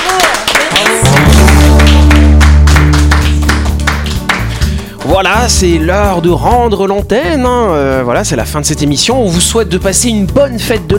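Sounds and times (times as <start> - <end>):
applause: 0.0 - 5.2
speech: 5.2 - 10.9.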